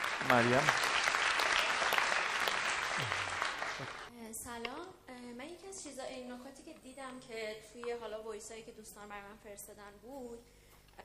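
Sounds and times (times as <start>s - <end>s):
audience applause: 0.0s - 4.1s
speech: 0.2s - 0.9s, 3.0s - 3.2s, 3.8s - 10.6s.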